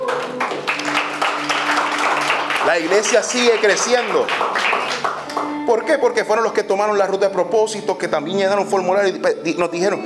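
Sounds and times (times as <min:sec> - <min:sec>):
loud audience applause: 0:00.0 - 0:05.6
speech: 0:02.7 - 0:10.0.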